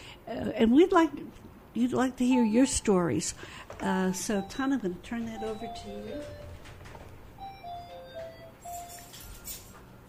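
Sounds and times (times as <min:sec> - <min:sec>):
low hum: 0:00.0 - 0:10.0
speech: 0:00.3 - 0:06.5
mobile phone ringtone with electronic melody: 0:02.3 - 0:02.8, 0:04.1 - 0:06.7, 0:07.4 - 0:09.8.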